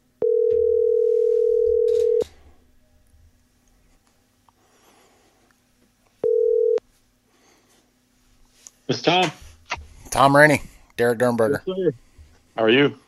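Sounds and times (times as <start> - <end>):
telephone dial tone: 0.2 - 2.3, 6.2 - 6.8
speech: 8.9 - 9.4, 10.2 - 12.0, 12.6 - 13.0.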